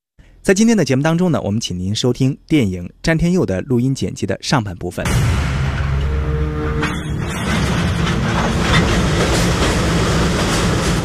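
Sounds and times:
speech: 0:00.4 - 0:05.5
steam train on the Beijing–Zhangjiakou railway tracks: 0:06.0 - 0:11.0.

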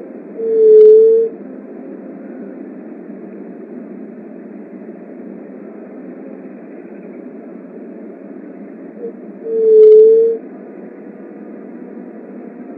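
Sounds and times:
Leptotila dove soft hollow hoot: 0:00.0 - 0:02.8, 0:08.3 - 0:10.5.

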